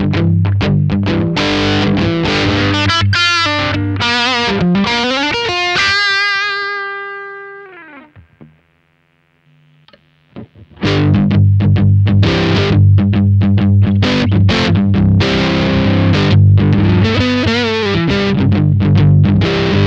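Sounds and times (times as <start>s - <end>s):
typical Telecaster electric guitar: 0.0s - 8.8s, 9.8s - 19.8s.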